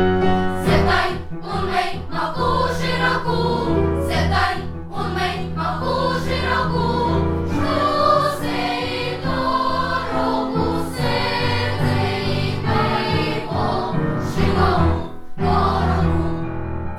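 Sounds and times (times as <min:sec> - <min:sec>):
chorus singing: 0:00.2 - 0:16.7.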